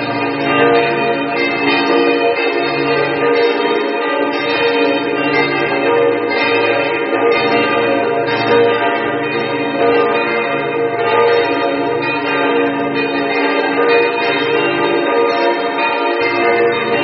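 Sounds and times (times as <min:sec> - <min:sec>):
church bells: 0:00.0 - 0:17.0.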